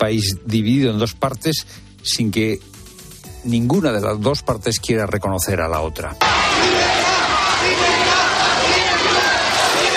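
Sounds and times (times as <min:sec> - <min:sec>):
speech: 0:00.0 - 0:02.8, 0:03.4 - 0:06.8
crowd shouting outside the Guadalajara prison gate: 0:06.2 - 0:09.9.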